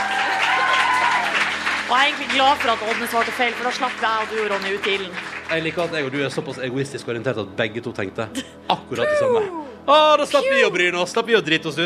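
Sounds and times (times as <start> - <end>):
audience applause: 0.0 - 6.8
speech: 1.9 - 11.8.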